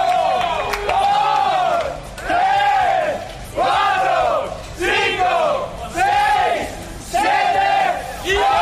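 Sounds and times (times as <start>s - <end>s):
team members and fans cheering and chanting in celebration: 0.0s - 8.5s.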